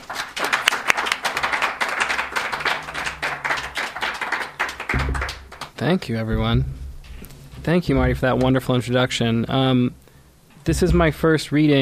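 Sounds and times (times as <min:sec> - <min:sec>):
audience clapping at a bookstore reading: 0:00.0 - 0:06.1
speech: 0:05.8 - 0:06.8, 0:07.6 - 0:10.0, 0:10.6 - 0:11.7.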